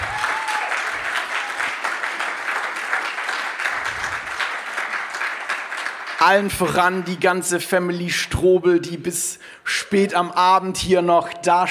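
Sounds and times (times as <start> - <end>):
audience applause: 0.0 - 6.8
speech: 6.2 - 11.7.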